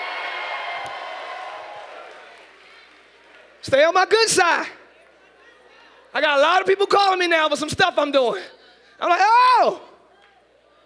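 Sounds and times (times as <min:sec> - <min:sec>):
crowd screaming and cheering: 0:00.0 - 0:03.3
speech: 0:03.6 - 0:04.8, 0:06.1 - 0:09.9.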